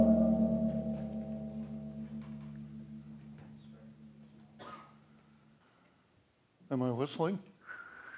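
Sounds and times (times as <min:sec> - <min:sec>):
gong struck with a mallet: 0:00.0 - 0:03.5
speech: 0:06.7 - 0:07.5.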